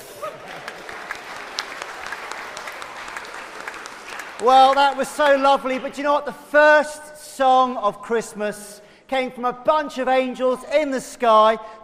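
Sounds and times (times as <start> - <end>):
audience applause: 0.0 - 5.9
speech: 4.4 - 11.8.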